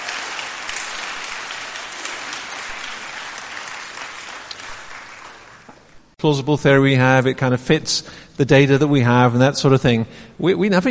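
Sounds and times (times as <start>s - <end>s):
audience applause: 0.0s - 6.1s
speech: 6.2s - 10.8s.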